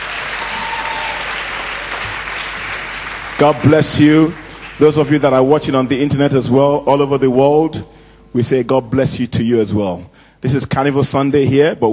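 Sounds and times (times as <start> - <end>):
audience applause: 0.0 - 5.1
speech: 3.4 - 11.9.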